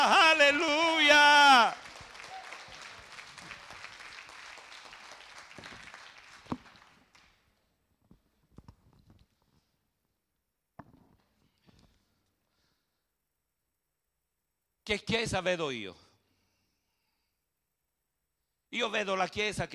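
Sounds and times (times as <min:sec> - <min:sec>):
audience applause: 0:00.2 - 0:07.4
speech: 0:14.9 - 0:16.1, 0:18.7 - 0:19.7.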